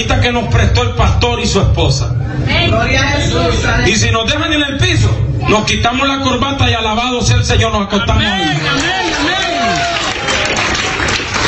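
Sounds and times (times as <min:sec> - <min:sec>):
speech: 0:00.0 - 0:10.0
audience applause: 0:08.4 - 0:11.4.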